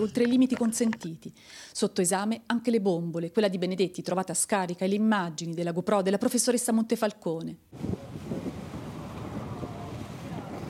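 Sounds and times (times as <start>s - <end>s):
speech: 0.0s - 8.1s
gusting wind buffeting the microphone: 7.7s - 10.6s
rough sea choppy water: 7.8s - 10.6s.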